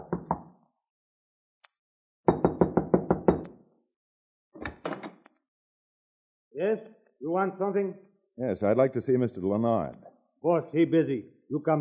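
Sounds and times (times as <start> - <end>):
knuckles rapping on a locked wooden door: 2.3 - 3.4
speech: 6.6 - 11.7.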